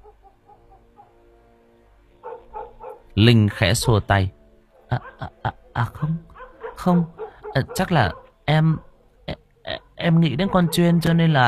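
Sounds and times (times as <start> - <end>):
yellow dog barking: 0.0 - 1.2, 2.2 - 4.1, 4.8 - 9.2, 10.2 - 11.2
speech: 3.2 - 6.2, 6.8 - 8.9, 9.7 - 11.4.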